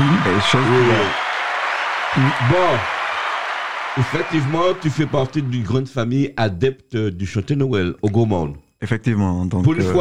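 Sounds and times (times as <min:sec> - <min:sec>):
audience applause: 0:00.0 - 0:05.8
speech: 0:00.3 - 0:01.2, 0:02.1 - 0:03.0, 0:04.0 - 0:09.9.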